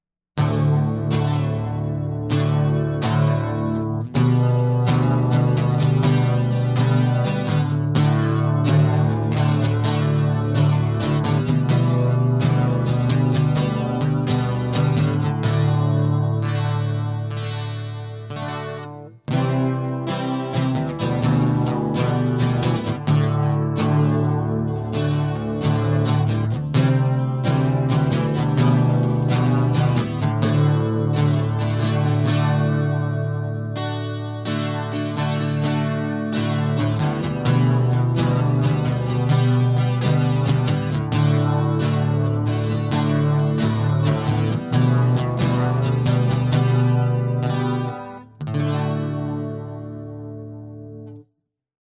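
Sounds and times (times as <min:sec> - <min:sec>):
acoustic music: 0:00.4 - 0:51.2.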